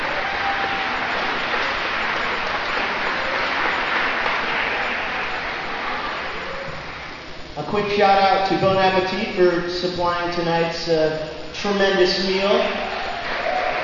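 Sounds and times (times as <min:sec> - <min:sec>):
audience applause: 0:00.0 - 0:07.2, 0:12.6 - 0:13.8
speech: 0:07.8 - 0:12.8.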